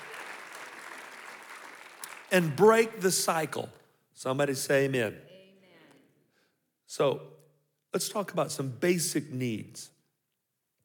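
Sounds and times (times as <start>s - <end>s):
audience clapping hands: 0.0s - 3.1s
speech: 2.3s - 5.3s, 6.9s - 10.0s.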